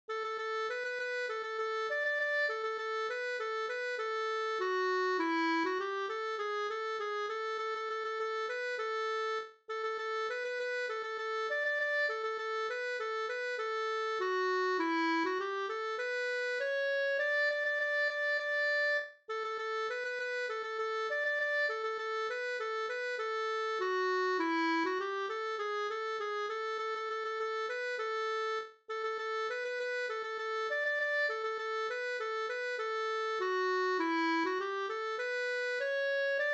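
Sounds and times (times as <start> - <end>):
polka music: 0.1 - 36.5.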